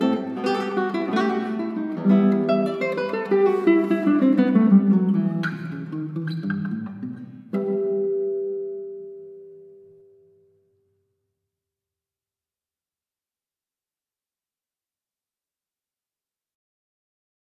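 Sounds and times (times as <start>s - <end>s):
classical guitar sonata in E minor: 0.0s - 10.8s.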